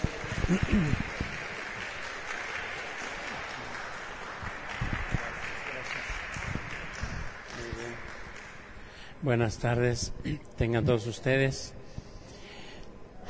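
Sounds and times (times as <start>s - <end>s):
audience applause: 0.0s - 9.1s
speech: 0.5s - 1.2s, 9.2s - 11.8s.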